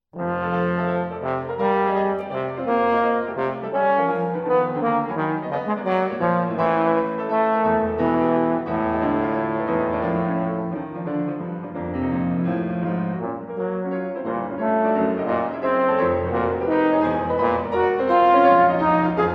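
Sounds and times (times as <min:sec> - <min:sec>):
piano: 0:00.1 - 0:19.3
trombone: 0:00.2 - 0:11.4, 0:12.8 - 0:19.3.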